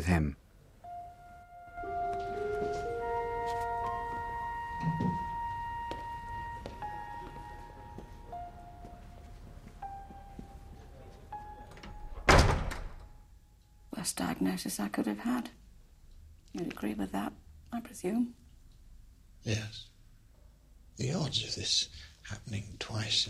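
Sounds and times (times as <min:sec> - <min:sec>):
speech: 0:00.0 - 0:00.4, 0:14.2 - 0:15.6, 0:16.6 - 0:18.4, 0:19.4 - 0:19.9, 0:21.0 - 0:23.2
tonal music: 0:00.7 - 0:12.3
door opening: 0:11.6 - 0:13.2.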